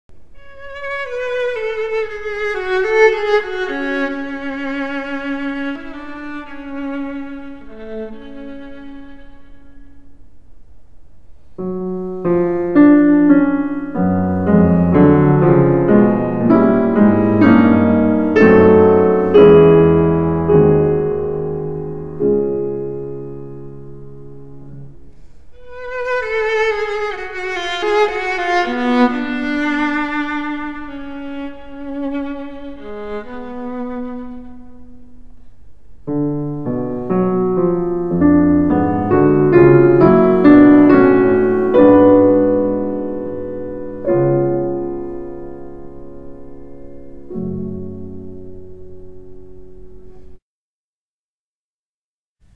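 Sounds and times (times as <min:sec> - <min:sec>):
viola and piano piece: 0:00.1 - 0:10.5, 0:11.4 - 0:50.4.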